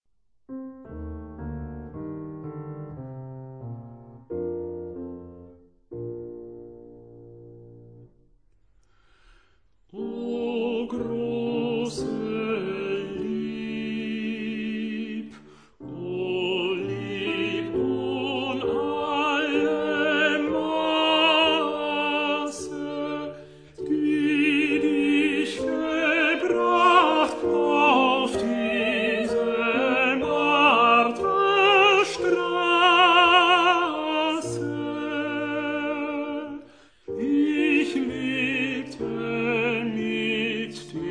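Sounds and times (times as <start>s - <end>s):
tenor singing: 9.9s - 41.0s.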